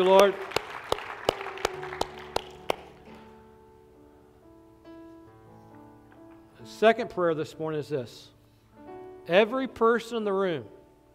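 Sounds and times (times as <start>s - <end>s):
speech: 0.0s - 0.5s, 6.8s - 8.4s, 9.3s - 10.8s
audience clapping: 0.0s - 3.3s.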